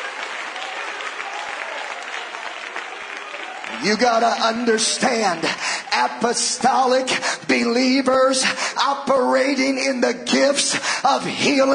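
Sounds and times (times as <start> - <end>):
audience clapping hands: 0.0 - 8.6
speech: 3.8 - 11.7.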